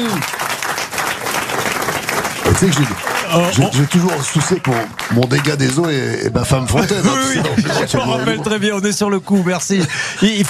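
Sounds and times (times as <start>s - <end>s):
speech: 0.0s - 0.4s, 2.6s - 10.4s
audience applause: 0.0s - 8.4s
laughter: 5.4s - 10.4s.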